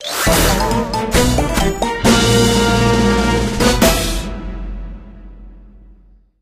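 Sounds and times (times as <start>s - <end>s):
level complete jingle: 0.1s - 3.2s.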